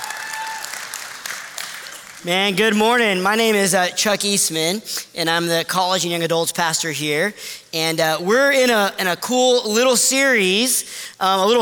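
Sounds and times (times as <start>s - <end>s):
audience clapping: 0.0s - 2.5s
speech: 2.2s - 11.6s.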